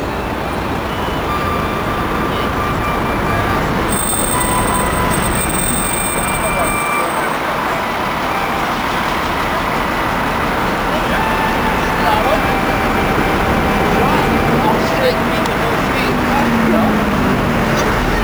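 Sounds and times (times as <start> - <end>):
outdoor ambience at a memorial exterior: 0.0 - 18.2
laughter: 4.3 - 18.2.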